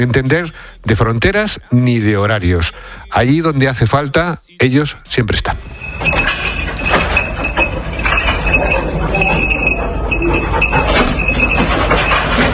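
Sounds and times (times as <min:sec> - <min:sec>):
speech: 0:00.0 - 0:06.4
rescue dog searching for survivors through rubble in La Guaira Venezuela: 0:05.8 - 0:12.5.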